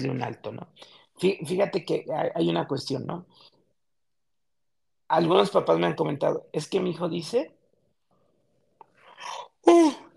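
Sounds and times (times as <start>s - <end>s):
speech: 0.0s - 3.5s, 5.1s - 7.6s, 9.2s - 10.1s
person yawning: 9.2s - 10.1s.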